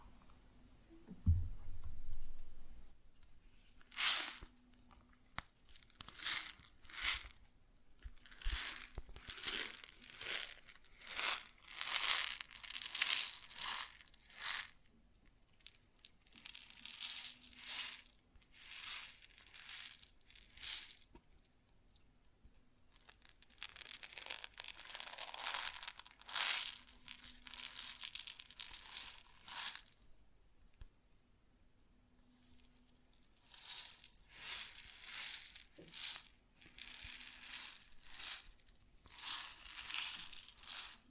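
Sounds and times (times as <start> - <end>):
low thump: 1.1 - 2.7
grain being handled crunchy rustle: 3.5 - 4.6, 5.6 - 7.4, 8.2 - 14.8, 15.6 - 21.0, 22.9 - 30.0, 32.4 - 41.0.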